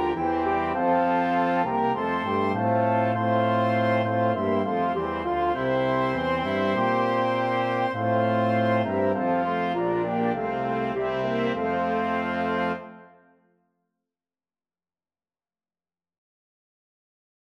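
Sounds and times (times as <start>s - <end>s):
flexible mixed ensemble of 4 players: 0.0s - 13.0s.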